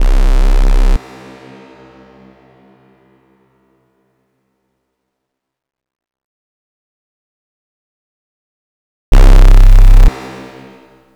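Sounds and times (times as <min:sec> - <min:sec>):
detuned saw synth noise: 0:00.0 - 0:01.0, 0:09.1 - 0:10.1.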